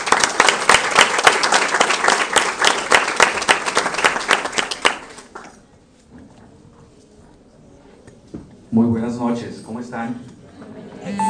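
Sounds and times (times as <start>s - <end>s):
audience applause: 0.0s - 5.6s
speech: 8.8s - 10.4s.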